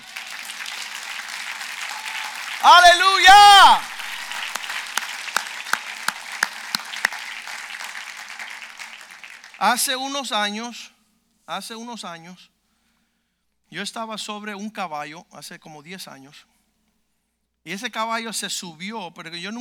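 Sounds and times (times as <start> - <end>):
audience applause: 0.0 - 9.8
speech: 2.6 - 3.9, 9.6 - 12.5, 13.7 - 16.5, 17.6 - 19.5.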